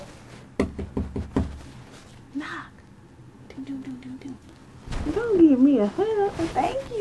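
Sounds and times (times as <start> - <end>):
knocking on a door: 0.6 - 1.6
speech: 5.5 - 7.0.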